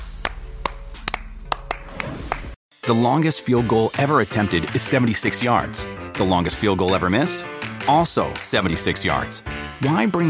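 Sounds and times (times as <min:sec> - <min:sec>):
clapping: 0:00.2 - 0:02.6
speech: 0:02.9 - 0:10.2.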